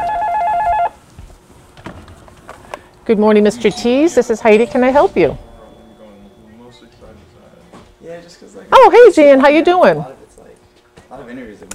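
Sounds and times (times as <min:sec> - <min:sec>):
office electronic telephone ringing: 0:00.0 - 0:01.0, 0:03.4 - 0:07.1
speech: 0:03.1 - 0:05.4, 0:08.4 - 0:10.2.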